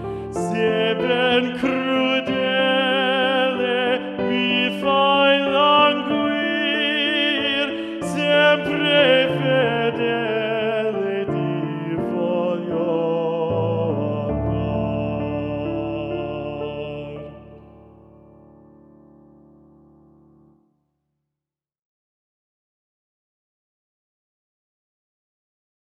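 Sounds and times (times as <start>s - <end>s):
choir singing in D minor: 0.0s - 18.2s.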